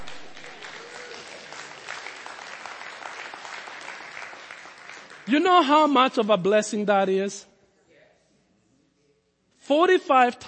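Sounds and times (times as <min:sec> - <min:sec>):
crowd applauding: 0:00.0 - 0:05.4
speech: 0:05.3 - 0:07.5, 0:09.7 - 0:10.4.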